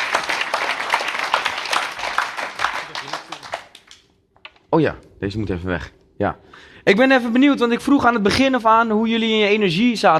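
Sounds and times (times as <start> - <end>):
crowd clapping: 0.0 - 4.1
speech: 4.7 - 10.1.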